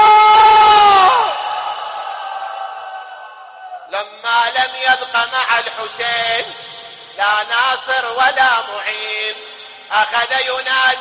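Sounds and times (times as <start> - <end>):
crowd of mourners crying out for Hussain: 0.0 - 4.0
speech: 4.6 - 6.6, 7.2 - 10.9.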